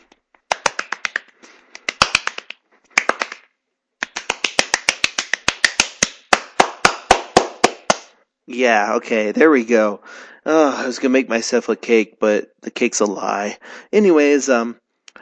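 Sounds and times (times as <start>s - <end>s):
person clapping hands: 0.0s - 8.1s
speech: 8.5s - 14.8s.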